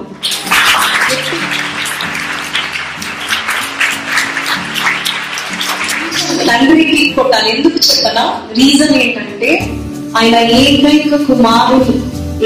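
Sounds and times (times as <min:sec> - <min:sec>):
church congregation clapping hands loudly in praise: 0:00.0 - 0:07.1
speech: 0:06.5 - 0:12.4.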